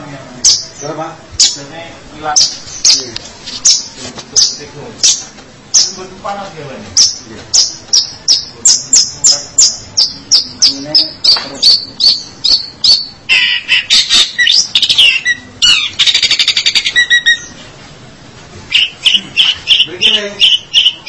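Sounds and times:
long-tailed shrike whistling and chattering: 2.3s - 6.0s, 7.0s - 17.6s, 18.7s - 21.0s.

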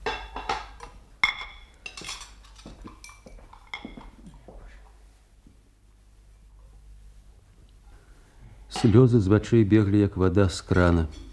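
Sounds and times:
plates and cutlery clinking while dishes are washed: 0.0s - 4.2s
speech: 8.8s - 11.2s.

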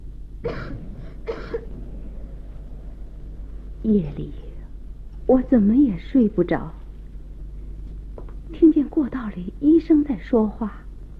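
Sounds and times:
steady low hum: 0.0s - 11.1s
woman coughing: 0.4s - 1.7s
speech: 3.8s - 4.4s, 5.3s - 6.8s, 9.0s - 10.8s.

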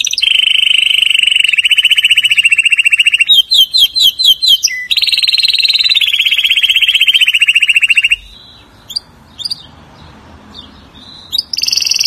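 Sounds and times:
canary song with rolled trills: 0.0s - 12.0s.

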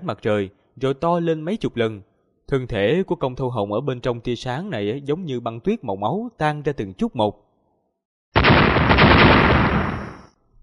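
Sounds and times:
speech: 0.0s - 7.4s
loud explosion sound effect: 8.4s - 10.3s.

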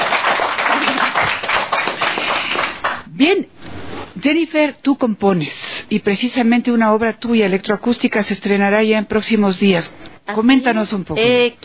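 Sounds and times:
applause honoring a harpist: 0.0s - 3.0s
speech: 4.2s - 11.6s.

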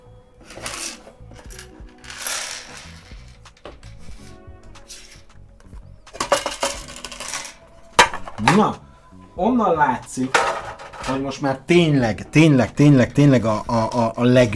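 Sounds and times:
leftover small parts dumped onto a table: 0.4s - 3.9s, 6.1s - 8.5s, 10.3s - 11.2s
speech: 8.6s - 8.8s, 9.4s - 10.5s, 11.1s - 14.5s.

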